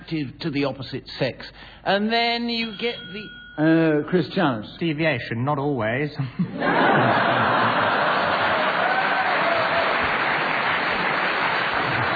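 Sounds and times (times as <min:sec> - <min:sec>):
speech: 0:00.1 - 0:08.0
audience chuckling: 0:06.4 - 0:09.0, 0:10.3 - 0:12.1
audience applause: 0:06.9 - 0:12.1.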